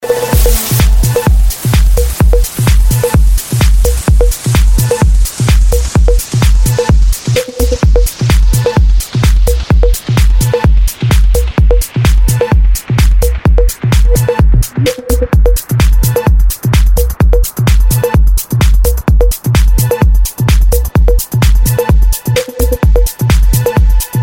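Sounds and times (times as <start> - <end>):
DJ vibes ringtone: 0.0 - 24.2.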